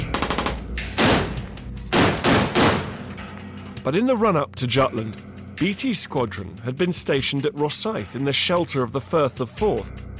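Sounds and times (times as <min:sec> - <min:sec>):
warship guns firing rapid shots during gunnery practice aboard HMS Portland: 0:00.0 - 0:01.3, 0:01.9 - 0:03.0
heavy warship gun blasts during gunnery practice aboard HMS Portland: 0:02.0 - 0:03.0
speech: 0:03.8 - 0:10.1.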